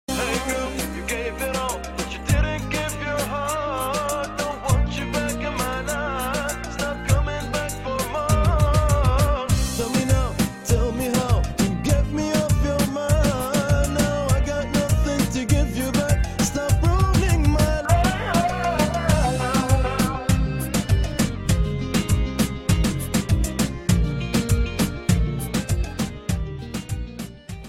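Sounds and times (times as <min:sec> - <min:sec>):
music: 0:00.1 - 0:27.6.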